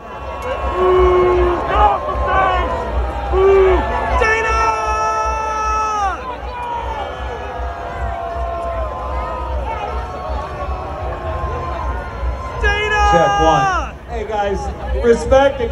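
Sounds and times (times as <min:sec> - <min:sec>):
scattered shouts and whoops: 0:00.0 - 0:14.0
large crowd booing a speaker on stage: 0:00.0 - 0:15.7.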